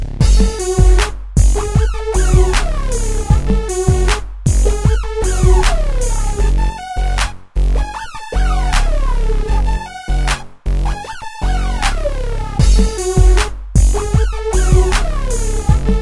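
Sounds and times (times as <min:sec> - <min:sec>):
dirty south hip hop music: 0:00.2 - 0:16.0.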